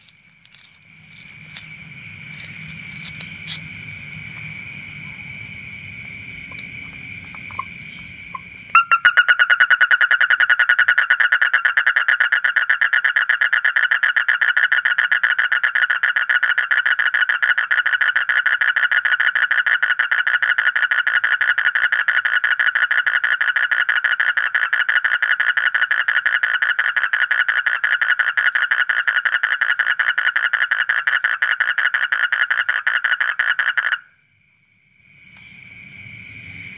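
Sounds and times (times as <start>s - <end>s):
faint rumbling: 0.0s - 8.7s
Asian common toad calling: 0.0s - 34.2s.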